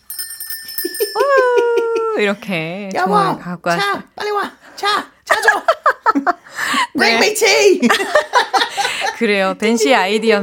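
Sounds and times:
Christmas sleigh bells ringing: 0:00.0 - 0:01.9
laughter: 0:01.1 - 0:02.2, 0:05.3 - 0:06.4, 0:07.8 - 0:09.3
speech: 0:02.2 - 0:06.3, 0:07.0 - 0:10.4.

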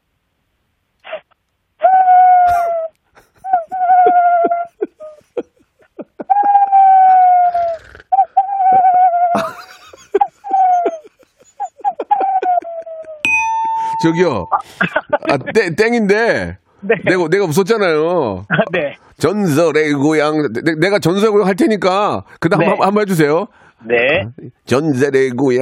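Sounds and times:
laughter: 0:02.5 - 0:07.0, 0:09.3 - 0:13.2, 0:14.0 - 0:15.8
owl hooting: 0:03.5 - 0:04.7, 0:06.3 - 0:09.6, 0:10.4 - 0:14.7
speech: 0:14.0 - 0:25.6.

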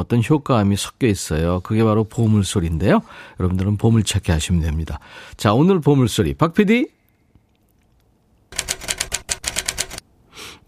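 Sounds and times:
speech: 0:00.0 - 0:07.0
typewriter typing: 0:08.5 - 0:10.0.

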